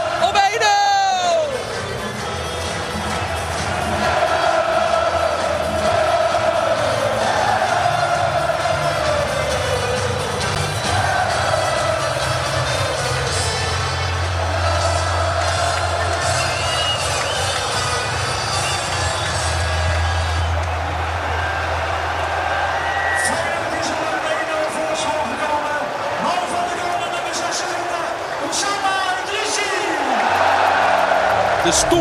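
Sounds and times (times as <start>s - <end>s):
huge stadium crowd cheering after a goal: 0.0s - 32.0s
stadium crowd chanting: 3.2s - 16.9s, 30.4s - 32.0s.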